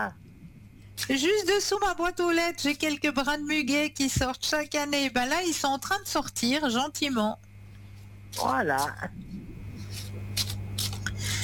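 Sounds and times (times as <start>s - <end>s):
speech: 0.0s - 0.2s, 1.0s - 7.4s, 8.3s - 9.3s
low steady hum: 0.0s - 11.4s
deck of cards being shuffled: 9.9s - 11.1s.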